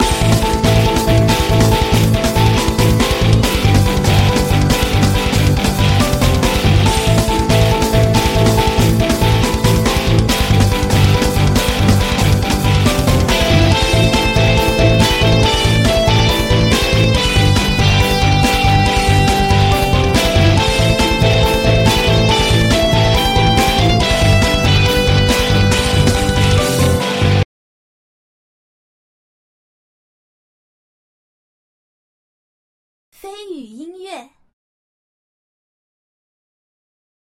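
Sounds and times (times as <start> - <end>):
normal battle music: 0.0 - 27.4.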